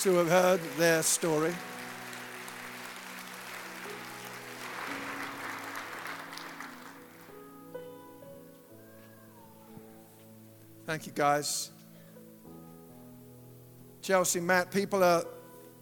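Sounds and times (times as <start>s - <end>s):
speech: 0.0s - 1.8s, 10.9s - 11.8s, 14.1s - 15.4s
church congregation applause welcoming two guests after a sermon: 0.0s - 7.4s.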